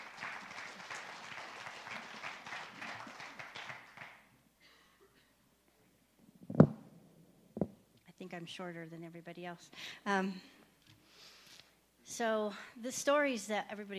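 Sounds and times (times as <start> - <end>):
audience applause at a storytelling gathering: 0.0 - 4.3
speech: 8.3 - 10.6, 12.2 - 13.9.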